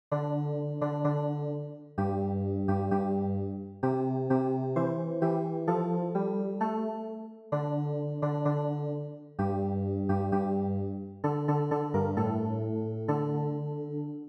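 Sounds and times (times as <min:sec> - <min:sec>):
keyboard: 0:00.1 - 0:14.2.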